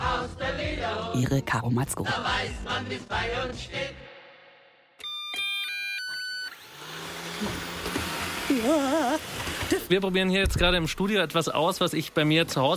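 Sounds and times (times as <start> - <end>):
speech: 1.1 - 4.0, 7.4 - 7.7, 8.5 - 12.7
two robot vacuum cleaners running: 5.1 - 10.0.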